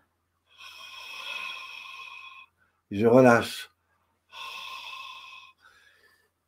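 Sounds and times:
deep inhale: 0:00.5 - 0:02.8, 0:04.3 - 0:06.4
speech: 0:02.9 - 0:03.7.

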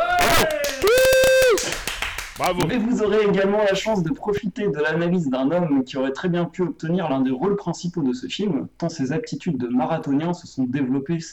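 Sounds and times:
applause: 0:00.0 - 0:02.8
speech: 0:02.4 - 0:11.3.

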